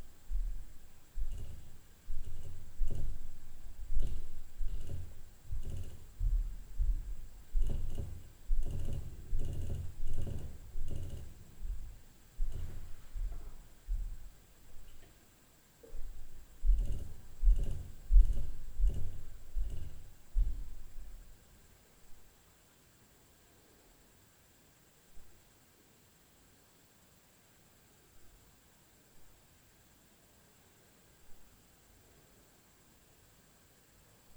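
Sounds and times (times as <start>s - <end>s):
tapping knocks at night: 0.0s - 15.0s, 15.9s - 21.3s
low-frequency upstairs noise at night: 0.0s - 22.2s.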